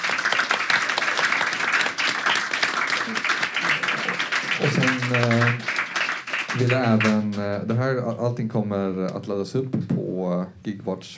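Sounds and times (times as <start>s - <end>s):
audience applause: 0.0s - 7.5s
speech: 4.6s - 5.7s, 6.5s - 11.1s.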